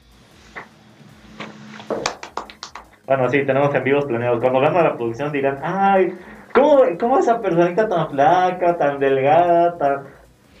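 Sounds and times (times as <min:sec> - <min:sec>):
scattered hand claps: 0:01.4 - 0:03.1
speech: 0:03.1 - 0:10.2.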